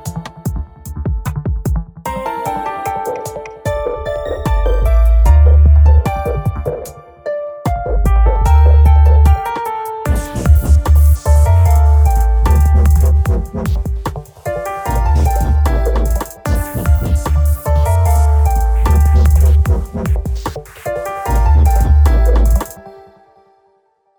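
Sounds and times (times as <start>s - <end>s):
dark drill grime music: 3.7s - 7.0s, 8.1s - 22.8s.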